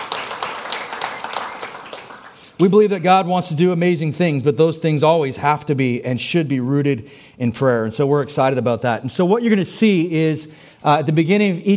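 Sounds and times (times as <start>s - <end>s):
audience clapping: 0.0s - 2.6s
speech: 2.6s - 11.7s.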